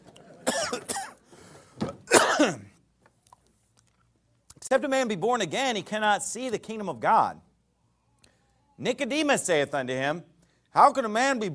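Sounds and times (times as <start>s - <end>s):
coughing while taking a cough drop: 0.4s - 1.3s, 2.0s - 2.8s
speech: 2.4s - 2.7s, 4.7s - 7.5s, 8.8s - 11.5s.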